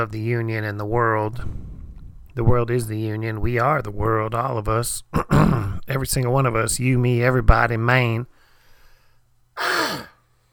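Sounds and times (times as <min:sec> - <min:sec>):
speech: 0:00.0 - 0:01.6, 0:02.4 - 0:08.4
throat clearing: 0:09.6 - 0:10.2.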